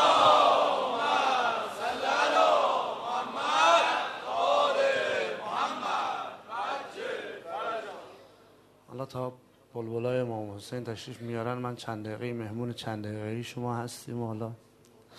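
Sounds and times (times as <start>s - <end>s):
audience loudly chanting salawat in unison: 0.0s - 8.2s
speech: 9.1s - 15.1s.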